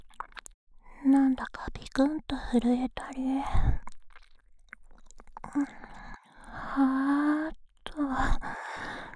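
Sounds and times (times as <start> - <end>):
wet ear licking in an ASMR role-play: 0.0 - 0.5, 3.8 - 6.6
speech: 1.1 - 3.8, 5.5 - 5.9, 6.8 - 7.3
breathy sighs and moans: 5.4 - 9.1.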